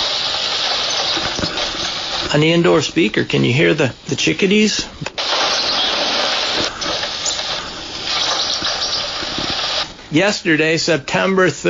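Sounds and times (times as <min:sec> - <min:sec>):
drizzly rain: 0:00.0 - 0:02.8, 0:05.2 - 0:09.9
speech: 0:02.3 - 0:05.1, 0:10.1 - 0:11.6.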